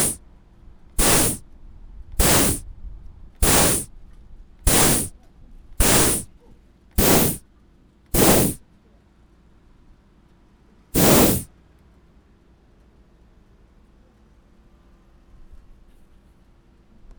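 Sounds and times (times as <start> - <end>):
tyre inflation station: 0.0 - 0.2, 1.0 - 1.4, 2.2 - 2.6, 3.4 - 3.9, 4.7 - 5.1, 5.8 - 6.3, 7.0 - 7.4, 8.2 - 8.6, 11.0 - 11.5.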